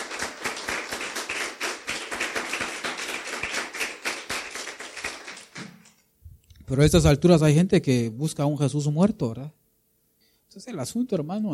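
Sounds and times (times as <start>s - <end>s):
audience applauding: 0.0s - 5.9s
speech: 6.7s - 9.6s, 10.6s - 11.5s.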